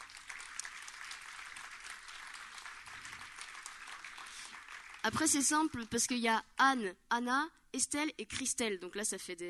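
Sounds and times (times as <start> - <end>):
audience applause: 0.0 - 5.1
speech: 5.1 - 9.4.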